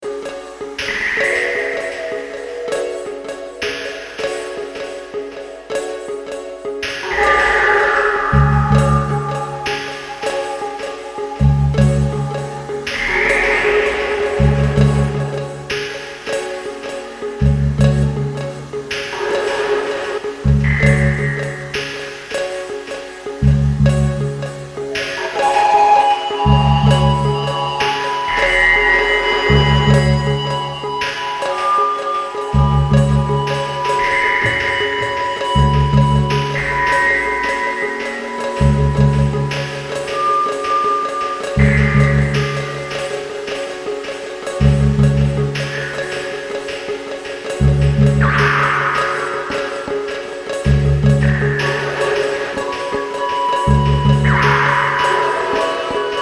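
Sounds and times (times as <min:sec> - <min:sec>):
ambient guitar: 0:00.0 - 0:56.2.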